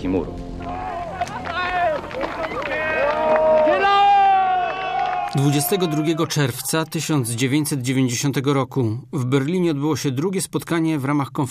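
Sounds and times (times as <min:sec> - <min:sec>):
speech: 0:00.0 - 0:00.8, 0:05.4 - 0:11.4
large crowd cheering and shouting at the Brandenburg Gate: 0:00.6 - 0:07.2.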